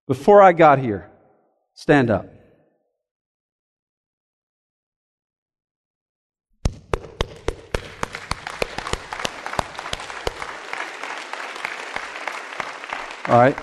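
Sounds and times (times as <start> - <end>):
speech: 0.1 - 1.1, 1.8 - 2.4, 13.3 - 13.6
audience applause: 7.9 - 13.6.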